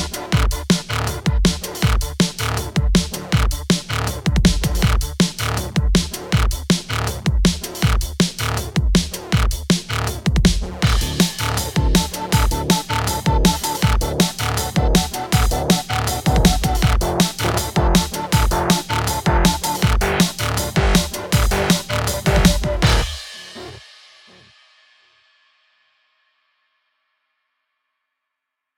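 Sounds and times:
drum and bass beat: 0.0 - 24.5.

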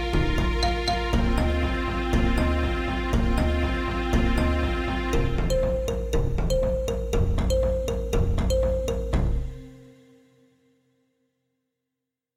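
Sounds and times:
altered musical scale: 0.4 - 10.3.

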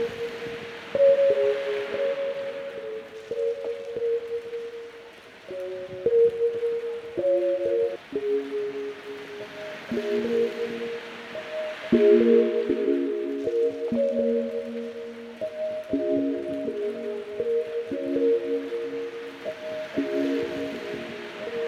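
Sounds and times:
gentle synth: 0.0 - 21.6
rain: 0.0 - 21.6.

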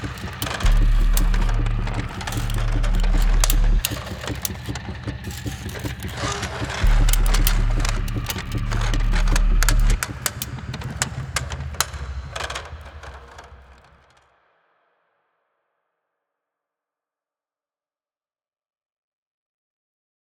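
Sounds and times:
instrumental music: 0.0 - 13.9.

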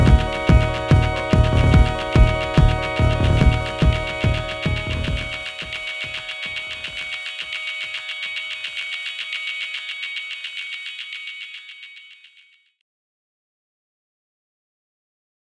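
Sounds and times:
organ dream rave music: 0.0 - 12.0.

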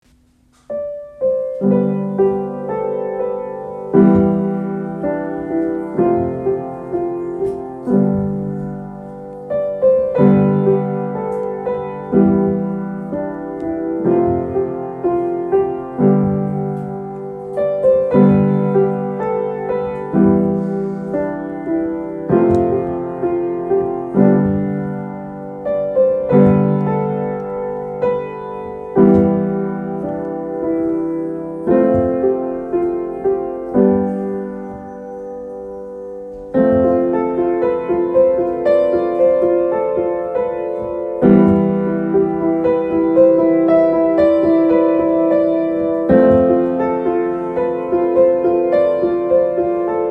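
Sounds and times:
piano: 0.0 - 50.0.

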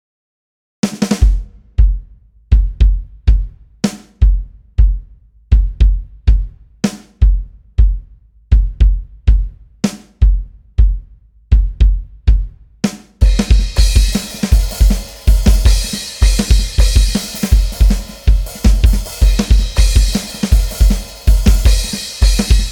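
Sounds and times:
drum track: 0.8 - 22.7.

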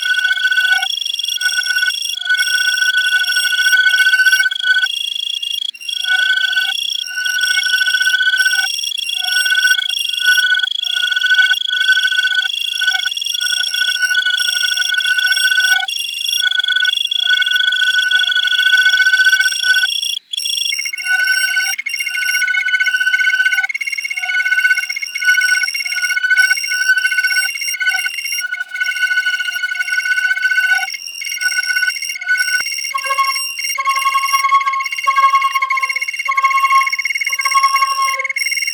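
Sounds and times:
cicadas: 0.0 - 38.7
flutes: 33.0 - 38.4.

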